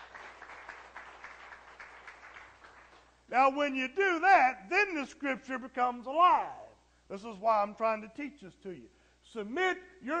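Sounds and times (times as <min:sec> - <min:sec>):
applause: 0:00.0 - 0:03.2
speech: 0:03.3 - 0:10.1.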